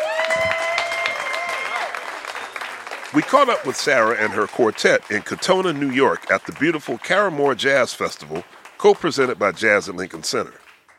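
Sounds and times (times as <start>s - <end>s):
whooping or whistling cheer: 0.0s - 5.0s
audience clapping: 0.0s - 10.9s
speech: 3.1s - 10.6s.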